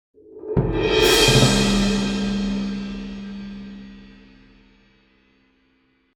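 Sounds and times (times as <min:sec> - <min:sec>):
percussion: 0:00.4 - 0:04.8.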